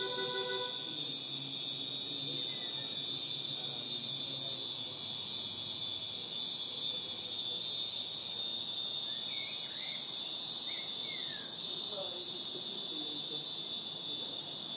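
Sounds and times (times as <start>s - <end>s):
cicadas: 0.0s - 14.7s.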